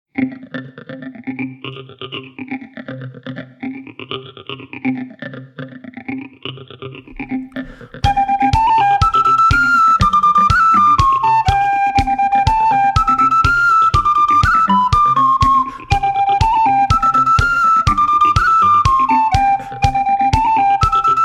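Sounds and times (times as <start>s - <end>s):
polka tune: 8.0s - 21.2s.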